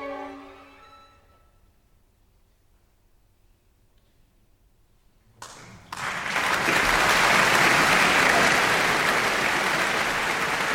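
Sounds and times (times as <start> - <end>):
audience applause: 5.4 - 10.7.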